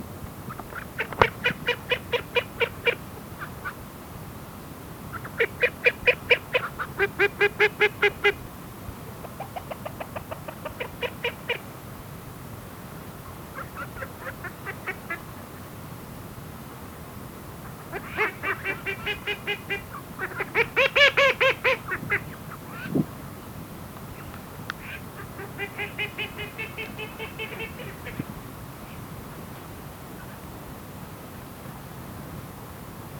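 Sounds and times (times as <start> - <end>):
ducks: 0.5 - 3.8, 5.1 - 8.4, 9.2 - 11.7, 13.5 - 15.7, 17.6 - 23.0, 24.1 - 29.5.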